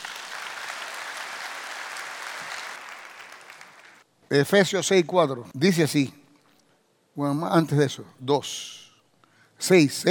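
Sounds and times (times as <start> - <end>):
audience applauding: 0.0 - 4.0
speech: 4.3 - 6.2, 7.2 - 8.8, 9.6 - 10.0.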